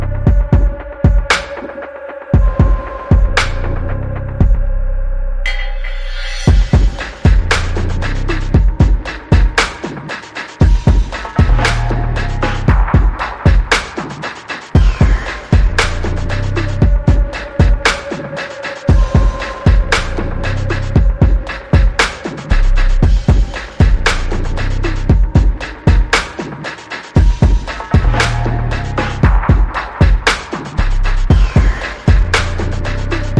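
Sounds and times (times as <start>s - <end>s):
bass: 0.0s - 1.4s, 2.4s - 9.7s, 10.9s - 13.4s, 14.8s - 18.0s, 19.4s - 21.8s, 22.5s - 25.7s, 27.4s - 30.0s, 30.8s - 33.3s
drums: 0.0s - 4.6s, 6.0s - 33.3s.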